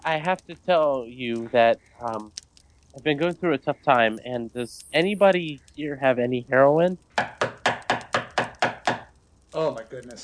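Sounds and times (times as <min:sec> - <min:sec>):
speech: 0:00.0 - 0:07.4, 0:09.5 - 0:10.2
knocking on door: 0:07.2 - 0:09.1.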